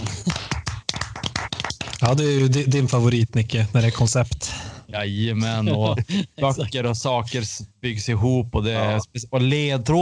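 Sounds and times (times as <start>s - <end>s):
hand clapping: 0.0s - 3.0s
speech: 2.0s - 10.0s
laughter: 5.4s - 6.8s.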